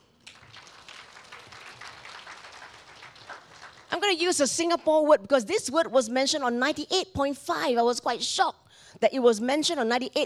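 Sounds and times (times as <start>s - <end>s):
crowd applauding: 0.0s - 4.2s
speech: 4.1s - 10.2s.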